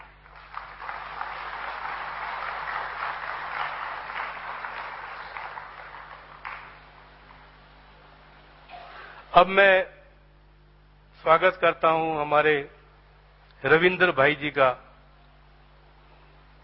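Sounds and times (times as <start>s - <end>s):
audience applause in welcome: 0.0s - 7.6s
speech: 9.4s - 10.0s, 11.2s - 12.8s, 13.6s - 14.8s.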